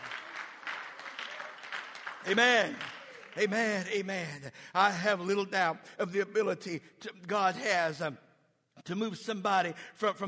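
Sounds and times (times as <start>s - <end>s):
audience clapping hands: 0.0s - 4.2s
speech: 2.2s - 8.2s, 8.8s - 10.2s.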